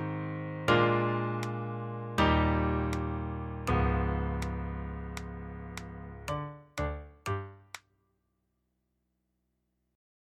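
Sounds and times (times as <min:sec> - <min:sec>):
piano: 0:00.0 - 0:07.8.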